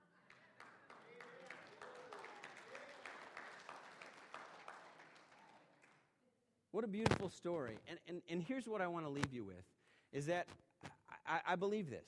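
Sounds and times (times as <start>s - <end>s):
people clapping: 0.0s - 6.2s
speech: 6.8s - 10.6s, 11.3s - 12.0s.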